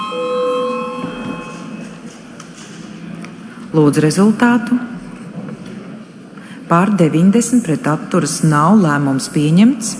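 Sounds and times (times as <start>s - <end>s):
parliament voting bell: 0.0s - 2.0s
speech: 3.7s - 4.9s, 6.7s - 9.9s.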